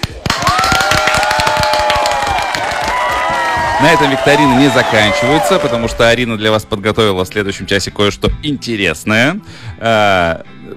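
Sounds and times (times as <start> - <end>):
applause: 0.0 - 6.0
voices cheering: 0.3 - 6.2
speech: 3.8 - 10.7.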